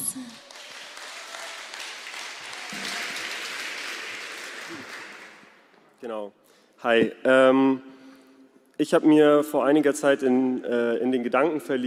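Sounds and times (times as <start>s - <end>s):
audience applause: 0.0s - 5.6s
speech: 6.0s - 7.9s, 8.8s - 11.8s.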